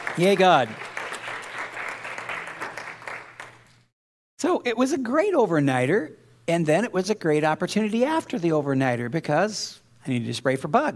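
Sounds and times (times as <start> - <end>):
audience applauding: 0.0 - 3.9
speech: 0.2 - 0.9, 4.4 - 10.9.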